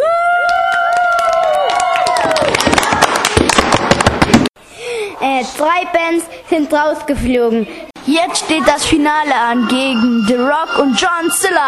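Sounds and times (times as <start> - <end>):
concert audience cheering wildly: 0.0 - 3.5
rapid clapping: 0.5 - 4.5
speech: 5.4 - 11.6.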